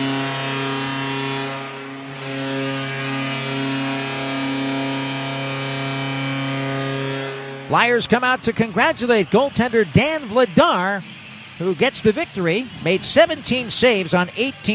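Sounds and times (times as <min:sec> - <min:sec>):
arena foghorn in Philadelphia: 0:00.0 - 0:07.9
speech: 0:07.7 - 0:14.7.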